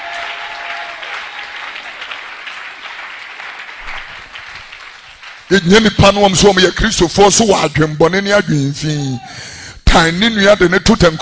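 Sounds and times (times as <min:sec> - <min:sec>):
audience clapping hands: 0:00.0 - 0:06.8
speech: 0:05.5 - 0:11.1.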